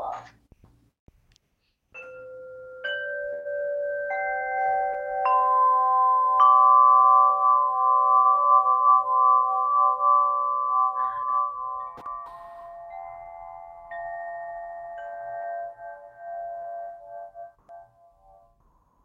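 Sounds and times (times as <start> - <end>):
flow chime ringing: 2.0 - 18.5.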